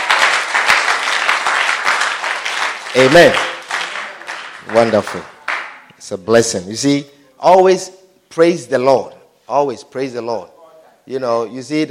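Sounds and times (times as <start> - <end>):
audience clapping: 0.0 - 5.9
speech: 2.9 - 3.5, 4.7 - 5.3, 6.0 - 11.9.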